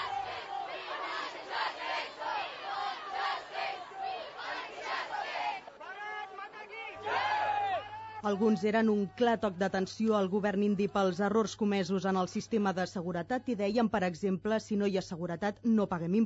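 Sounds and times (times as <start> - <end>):
protest crowd shouting slogans: 0.0 - 11.1
speech: 8.2 - 16.2.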